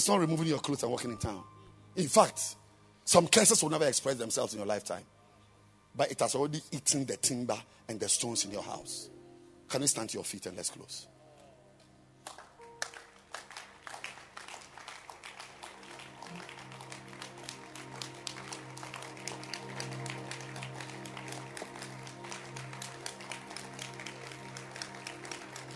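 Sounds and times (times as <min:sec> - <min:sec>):
speech: 0:00.0 - 0:05.2, 0:06.0 - 0:11.2
audience clapping: 0:12.2 - 0:25.7.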